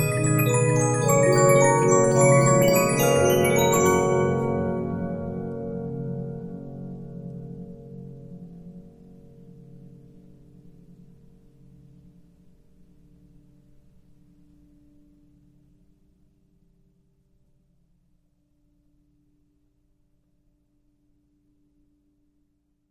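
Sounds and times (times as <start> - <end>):
Regina 15-inch disc music box: 0.0 - 5.7.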